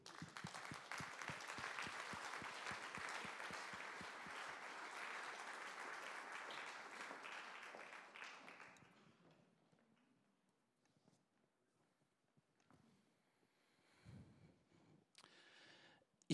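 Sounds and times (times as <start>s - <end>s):
audience applause: 0.0s - 8.8s.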